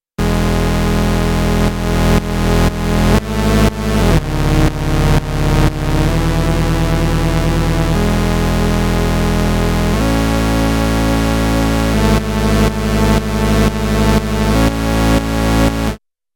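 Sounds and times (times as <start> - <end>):
pumping bass in E: 0.1 - 16.0.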